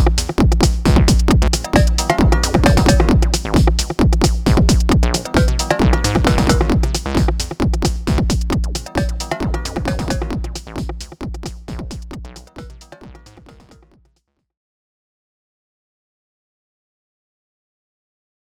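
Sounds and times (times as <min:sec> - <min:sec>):
JoMoX Alpha Base drum machine beat: 0:00.0 - 0:13.9.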